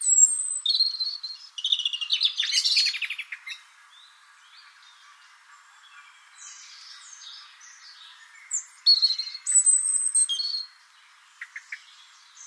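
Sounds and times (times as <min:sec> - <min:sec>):
European robin song of high whistles and trill: 0:00.0 - 0:03.3, 0:08.5 - 0:10.7.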